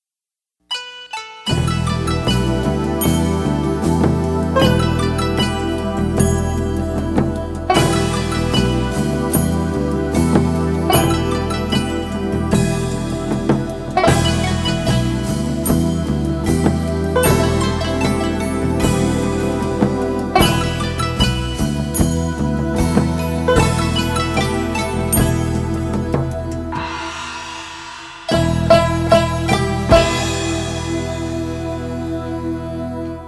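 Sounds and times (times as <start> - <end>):
music without guide flute: 0.7 - 33.2.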